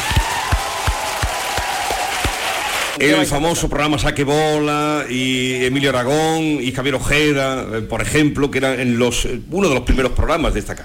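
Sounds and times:
studio audience applause: 0:00.0 - 0:03.0
speech: 0:03.0 - 0:10.8.

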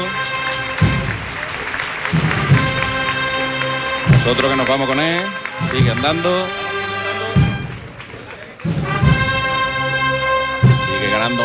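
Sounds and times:
large crowd applauding during procession: 0:00.0 - 0:11.4
low voices: 0:01.2 - 0:09.9
speech: 0:04.3 - 0:06.6, 0:11.1 - 0:11.4.

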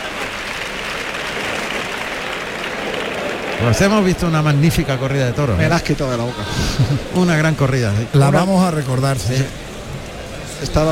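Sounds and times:
bullfight crowd ovation for Roca Rey: 0:00.0 - 0:07.9
speech: 0:03.6 - 0:09.6, 0:10.6 - 0:10.9
laughter: 0:06.4 - 0:07.4.

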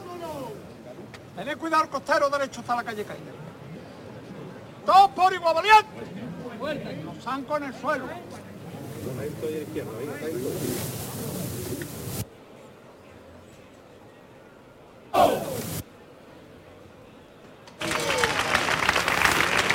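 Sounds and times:
speech: 0:01.4 - 0:03.5, 0:04.9 - 0:08.4, 0:09.1 - 0:11.1
crowd shouting and cheering: 0:15.1 - 0:15.8
crowd applauding: 0:17.8 - 0:19.7.

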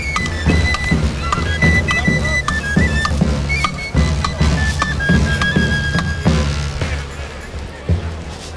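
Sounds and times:
tamboril drums played by procession drummers: 0:00.0 - 0:08.5.

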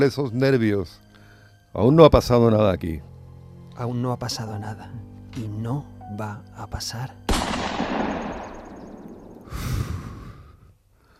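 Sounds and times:
speech: 0:00.0 - 0:01.0, 0:01.7 - 0:03.1, 0:03.8 - 0:08.1
gunshot in a tense dramatic scene: 0:07.3 - 0:09.7.

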